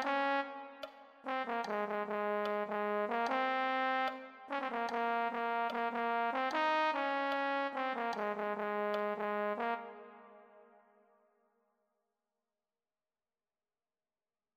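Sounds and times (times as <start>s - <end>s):
euphonium: 0.0s - 10.8s.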